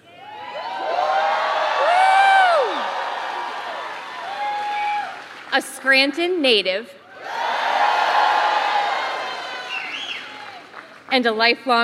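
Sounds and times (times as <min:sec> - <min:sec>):
large crowd booing and then cheering: 0:00.0 - 0:05.5, 0:07.1 - 0:10.8
speech: 0:05.6 - 0:07.0, 0:11.2 - 0:11.8
shrill whistles: 0:09.4 - 0:10.6.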